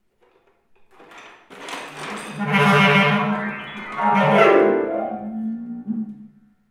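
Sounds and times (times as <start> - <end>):
improvised jingle: 2.0 - 5.9.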